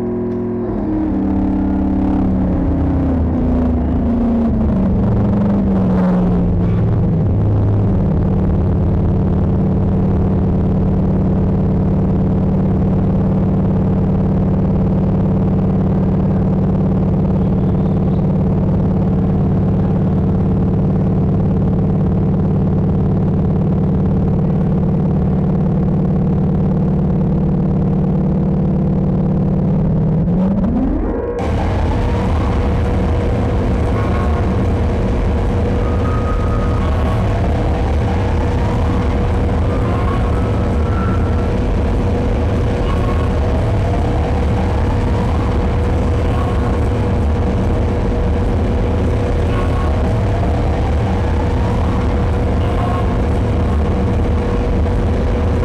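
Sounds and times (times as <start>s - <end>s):
audio feedback: 0.0s - 55.6s.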